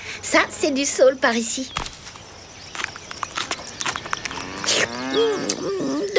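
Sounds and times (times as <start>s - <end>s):
speech: 0.3s - 1.9s
cows mooing: 4.3s - 6.1s.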